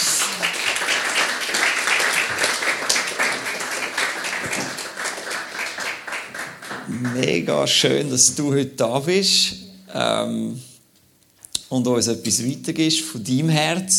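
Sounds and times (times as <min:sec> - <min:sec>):
warm audience applause welcoming a guest: 0:00.0 - 0:07.9
speech: 0:06.9 - 0:10.7, 0:11.7 - 0:13.9.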